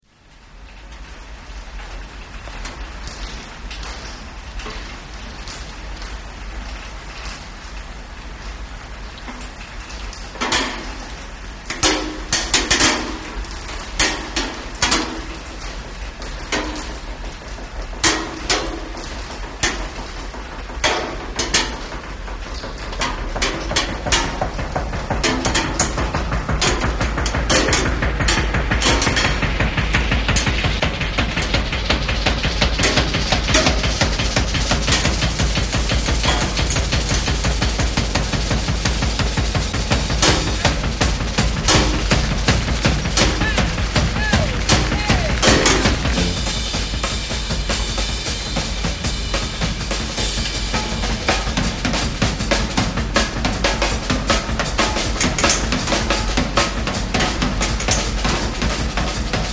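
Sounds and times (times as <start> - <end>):
rain pounding against a roof: 0.0 - 59.5
big band solo: 24.8 - 55.3.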